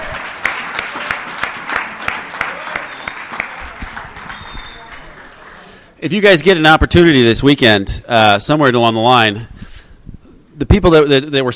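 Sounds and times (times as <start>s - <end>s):
audience applause: 0.0s - 5.9s
speech: 6.0s - 9.5s, 10.6s - 11.5s.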